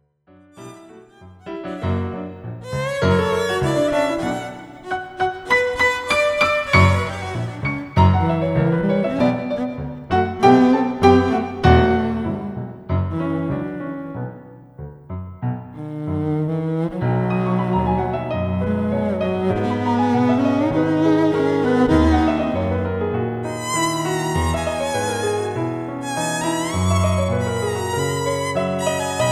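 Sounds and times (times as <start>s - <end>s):
tango canzon music: 0.6s - 29.3s.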